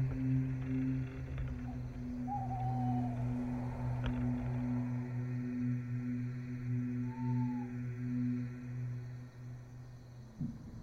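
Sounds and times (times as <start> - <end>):
night insects hissing: 0.0 - 10.8
owl-like call: 1.6 - 4.8, 6.8 - 8.4.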